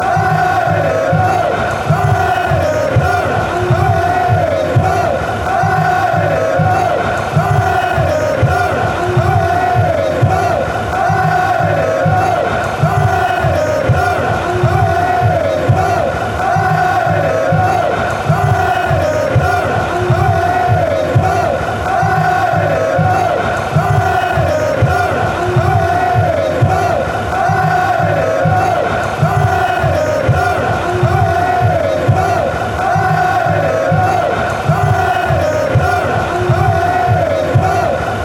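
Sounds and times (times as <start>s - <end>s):
fans chanting: 0.0s - 38.2s.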